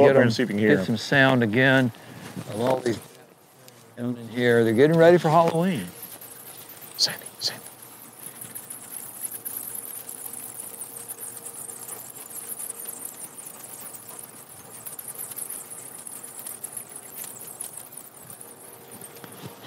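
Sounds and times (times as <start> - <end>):
speech: 0.1 - 3.1, 4.0 - 6.0, 7.0 - 7.6
faint rustling and tapping: 0.7 - 19.6
many small mammals squeaking and chirping: 4.0 - 19.6.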